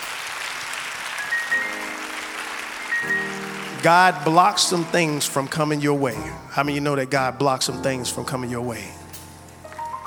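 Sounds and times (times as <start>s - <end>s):
audience hand clapping: 0.0s - 6.2s
speech: 3.8s - 9.0s.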